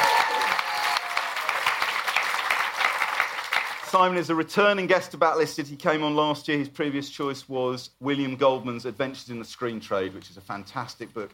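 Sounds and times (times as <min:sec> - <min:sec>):
audience applause: 0:00.0 - 0:04.0
speech: 0:03.9 - 0:11.3.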